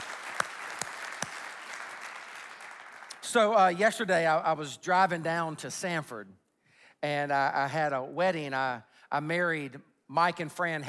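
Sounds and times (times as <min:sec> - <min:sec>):
sharp claps: 0:00.0 - 0:03.3
church congregation clapping to welcome online worshippers: 0:00.0 - 0:04.0
speech: 0:03.3 - 0:06.4, 0:07.0 - 0:10.8.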